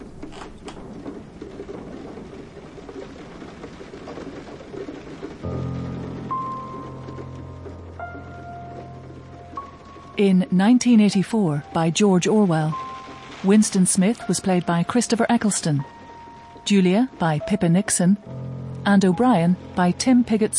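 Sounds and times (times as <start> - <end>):
rain starting to fall: 0.0 - 20.5
low musical tones: 5.4 - 20.5
speech: 10.2 - 12.8, 13.4 - 16.0, 16.7 - 20.5.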